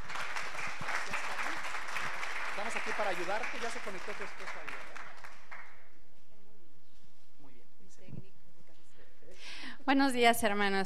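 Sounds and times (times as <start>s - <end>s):
audience applause welcoming a speaker: 0.0s - 5.8s
speech: 2.9s - 5.1s, 9.8s - 10.8s.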